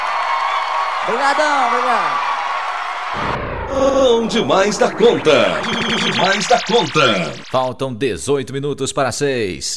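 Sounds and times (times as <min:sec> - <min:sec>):
applause and cheering: 0:00.0 - 0:03.7
speech: 0:01.0 - 0:02.3, 0:03.1 - 0:09.7.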